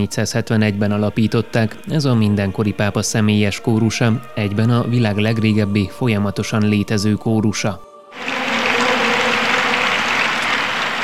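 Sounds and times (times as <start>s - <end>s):
speech: 0.0s - 8.4s
crowd applauding in Saint Peter's Square: 8.2s - 11.0s.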